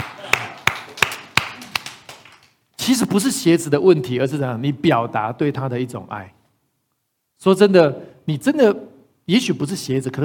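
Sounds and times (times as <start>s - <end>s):
hands clapping: 0.0s - 2.6s
speech: 2.9s - 6.4s, 7.4s - 10.2s.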